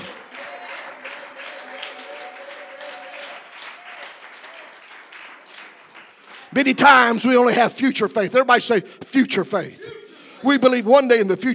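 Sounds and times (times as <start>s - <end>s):
audience clapping hands: 0.0s - 7.4s
speech: 6.5s - 11.5s.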